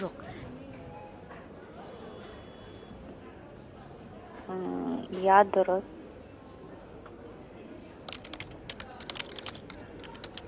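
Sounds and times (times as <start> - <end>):
speech: 0.0 - 0.3, 4.5 - 6.0
typing on a computer keyboard to record feedback: 8.1 - 10.4.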